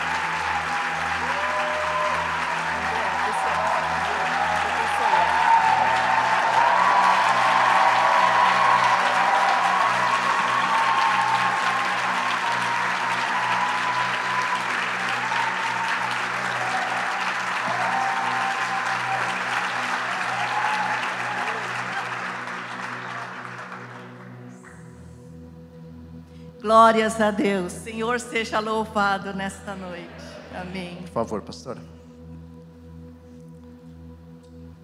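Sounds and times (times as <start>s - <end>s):
audience applause: 0.0s - 24.9s
speech: 26.9s - 32.0s.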